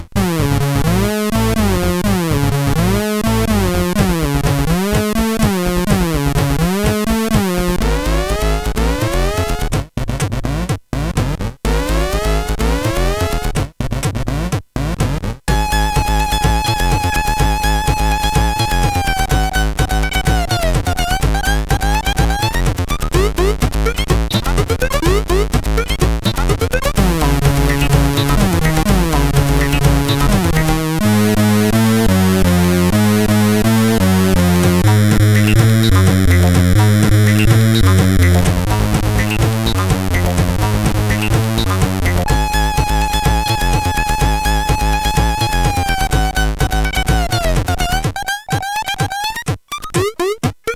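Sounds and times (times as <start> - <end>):
techno beat on SID CSG8580R5 sound chip: 0.2 - 50.7.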